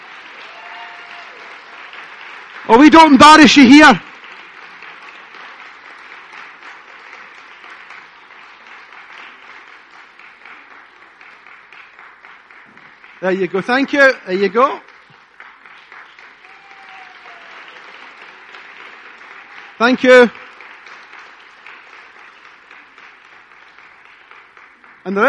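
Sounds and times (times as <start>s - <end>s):
audience applause: 0.0s - 25.2s
speech: 2.6s - 4.1s, 13.2s - 14.9s, 19.8s - 20.4s, 25.1s - 25.2s.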